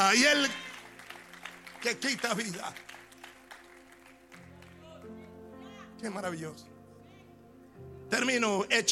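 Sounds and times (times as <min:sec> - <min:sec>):
audience clapping: 0:00.2 - 0:05.1
speech: 0:01.8 - 0:03.0, 0:06.0 - 0:06.7, 0:08.1 - 0:08.9.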